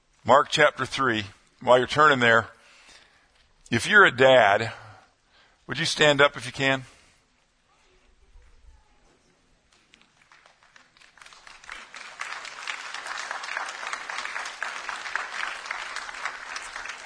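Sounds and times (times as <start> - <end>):
speech: 0.2 - 2.6, 3.7 - 4.8, 5.7 - 7.0
crowd clapping: 9.7 - 17.0.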